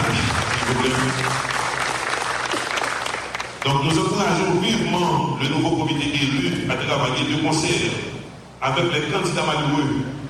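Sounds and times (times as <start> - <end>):
audience applause: 0.0 - 3.7
speech: 0.7 - 1.6, 3.6 - 10.1.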